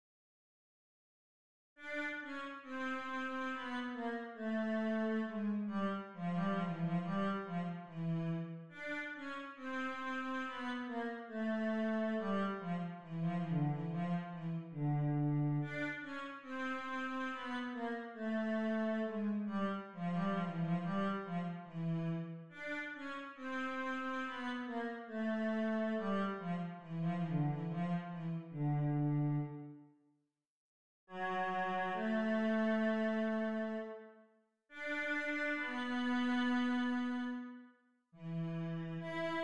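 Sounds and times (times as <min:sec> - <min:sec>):
habanera on cello: 0:01.8 - 0:29.8, 0:31.1 - 0:34.1, 0:34.8 - 0:37.6, 0:38.2 - 0:39.4.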